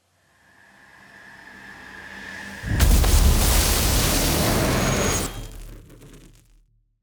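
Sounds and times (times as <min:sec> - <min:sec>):
riser: 0:02.5 - 0:06.4
electric zap: 0:02.6 - 0:06.5.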